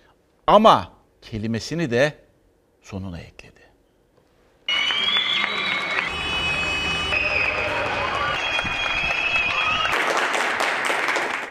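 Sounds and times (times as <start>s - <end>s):
speech: 0.5s - 2.2s, 2.8s - 3.6s
high whoops and whistle-like calls: 4.7s - 10.2s
applause: 4.7s - 11.4s.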